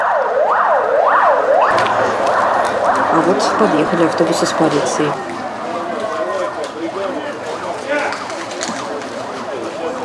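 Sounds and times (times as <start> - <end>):
ambulance sirens wailing as ambulances drive away: 0.0 - 7.9
speech: 3.2 - 5.4.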